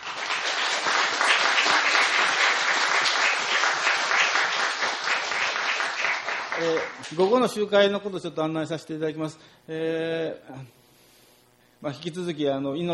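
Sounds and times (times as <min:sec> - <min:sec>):
applause: 0:00.0 - 0:07.2
speech: 0:06.6 - 0:10.8, 0:11.8 - 0:12.9.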